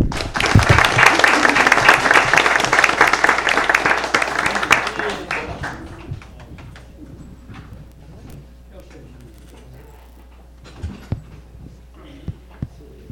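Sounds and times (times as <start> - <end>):
round of applause from a crowd: 0.0 - 6.9.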